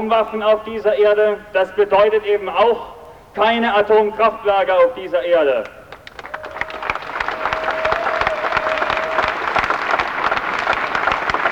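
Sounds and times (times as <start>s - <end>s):
speech: 0.0s - 5.8s
audience applause: 5.9s - 11.5s.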